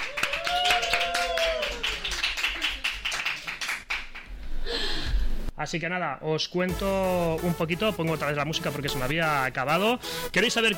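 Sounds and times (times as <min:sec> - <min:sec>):
audience clapping: 0:00.0 - 0:04.4
speech: 0:05.6 - 0:10.7.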